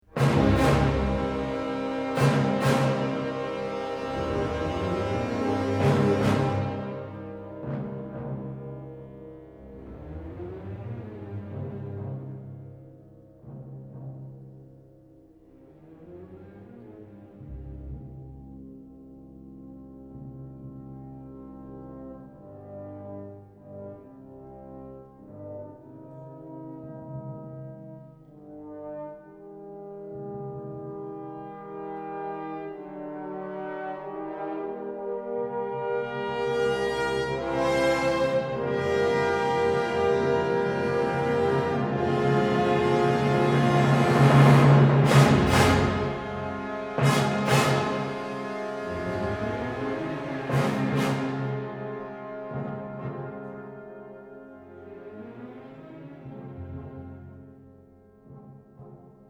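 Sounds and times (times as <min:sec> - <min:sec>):
funeral march music: 0:00.2 - 0:10.7, 0:35.6 - 0:54.6.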